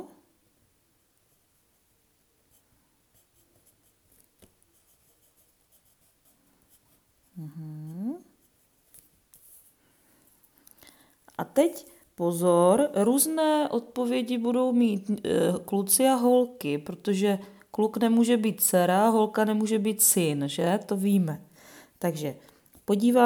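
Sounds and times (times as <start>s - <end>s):
pen writing a name on a worksheet: 2.5s - 7.4s
speech: 11.6s - 23.2s.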